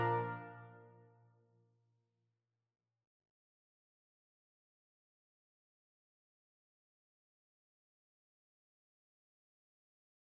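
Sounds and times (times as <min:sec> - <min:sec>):
brass quintet: 0:00.0 - 0:00.9.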